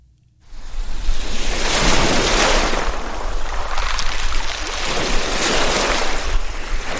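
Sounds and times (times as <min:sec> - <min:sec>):
Lake Ontario waves washing ashore and pulling back: 0:00.5 - 0:06.9.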